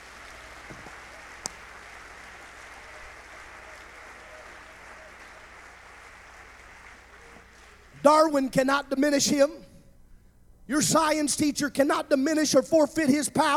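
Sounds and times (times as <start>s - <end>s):
audience clapping hands: 0.0s - 8.3s
speech: 8.0s - 9.6s, 10.7s - 13.5s.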